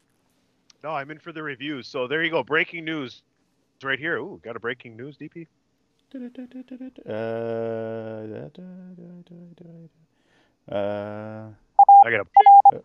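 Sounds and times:
speech: 0.8s - 12.8s
beeping tones likened to Morse code: 11.8s - 12.8s.

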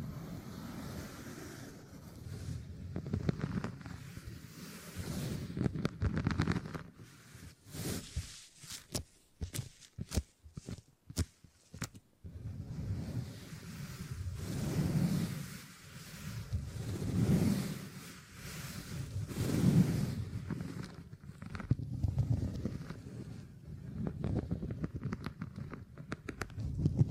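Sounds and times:
beeswax rubbing and squishing: 1.2s - 27.0s
sharp rapid crackles and taps: 5.6s - 6.9s, 8.8s - 12.0s, 24.1s - 27.0s.

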